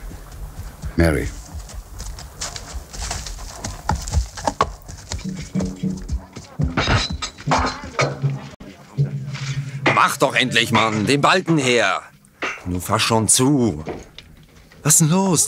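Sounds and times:
horse hooves clip-clopping: 0.0 - 9.1, 13.7 - 15.0
speech: 1.0 - 1.4, 10.1 - 14.1, 14.8 - 15.4.

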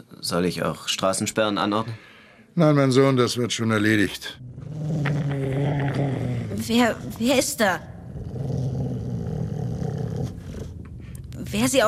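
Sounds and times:
speech: 0.0 - 5.1, 6.6 - 7.9, 11.5 - 11.8
dog growling: 4.2 - 11.7.

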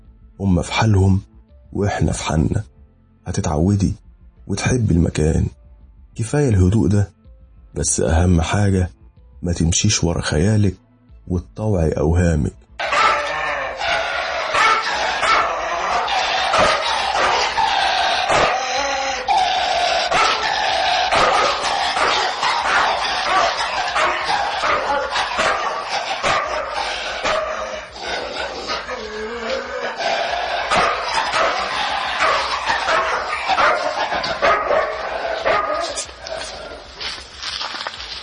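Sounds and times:
speech: 0.4 - 5.6, 6.2 - 12.6
dog barking loudly with yips and whimpers: 12.8 - 36.6.

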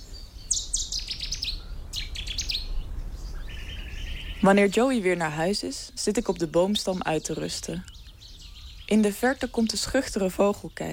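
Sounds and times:
Cetti's warbler singing: 0.0 - 10.9
speech: 4.4 - 7.9, 8.9 - 10.9.

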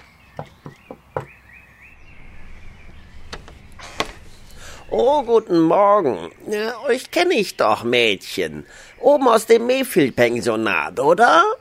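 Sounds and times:
knocking on a door: 0.4 - 1.4
speech: 4.9 - 11.5.

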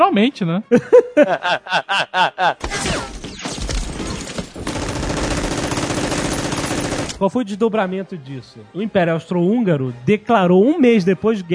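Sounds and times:
speech: 0.0 - 3.1, 7.2 - 11.5
laughter: 0.7 - 2.8
pistol gunshots: 2.6 - 7.2.

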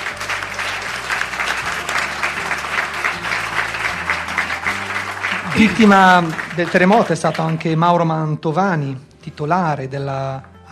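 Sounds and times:
audience applause: 0.0 - 7.8
speech: 5.6 - 10.6.

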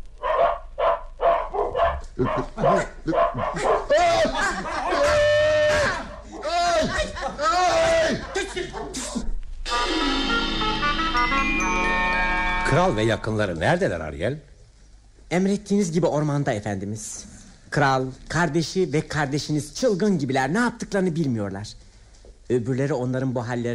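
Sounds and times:
dogs barking and yipping: 0.2 - 3.9
speech: 2.2 - 6.0, 9.8 - 14.5, 15.3 - 21.8, 22.5 - 23.7
laughter: 2.2 - 9.3.

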